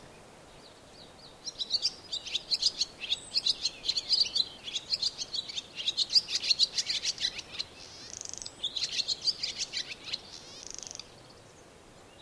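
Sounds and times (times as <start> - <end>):
barn swallow twittering: 1.5 - 11.1.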